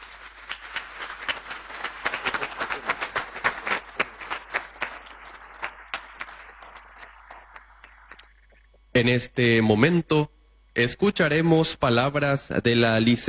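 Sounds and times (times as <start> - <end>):
audience applause: 0.0 - 8.6
speech: 9.0 - 13.2.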